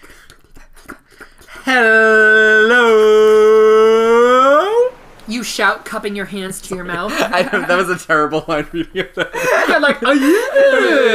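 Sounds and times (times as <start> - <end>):
person imitating lapping waves with mouth: 0.0 - 5.1
speech: 1.7 - 2.1, 5.5 - 11.1
laughter: 6.7 - 11.1.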